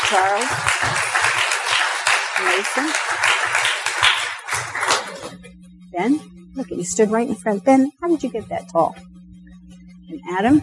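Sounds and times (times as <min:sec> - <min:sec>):
small group hand clapping for graduates: 0:00.0 - 0:05.4
speech: 0:00.1 - 0:01.4, 0:02.4 - 0:05.4, 0:06.0 - 0:09.2, 0:10.1 - 0:10.6.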